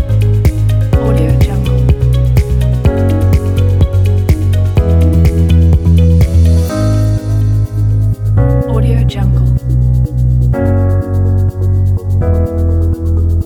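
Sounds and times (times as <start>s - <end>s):
ambient corporate tech music: 0.0s - 13.4s.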